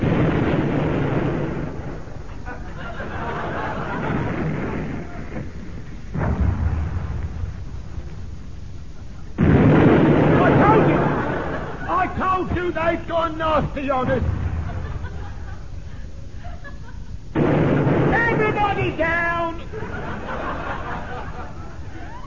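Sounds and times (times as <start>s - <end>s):
explosions from a weapon fired on command: 0.0s - 8.6s, 9.3s - 15.8s, 17.3s - 21.3s
laughter: 2.3s - 5.3s, 10.3s - 12.5s, 14.4s - 17.2s, 19.6s - 22.2s
speech: 13.7s - 14.3s.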